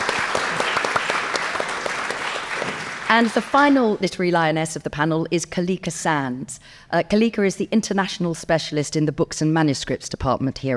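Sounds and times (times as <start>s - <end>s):
audience applause: 0.0s - 4.0s
speech: 3.1s - 10.7s.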